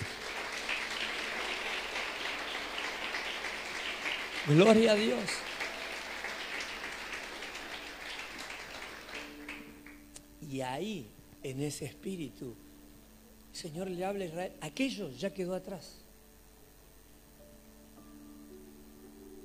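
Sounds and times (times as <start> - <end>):
audience applauding: 0.0 - 10.2
speech: 4.4 - 5.5, 10.5 - 12.6, 13.6 - 16.0.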